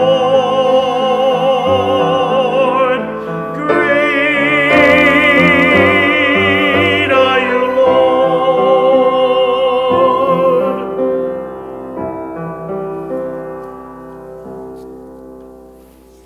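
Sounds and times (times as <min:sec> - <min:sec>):
closing hymn: 0:00.0 - 0:12.4.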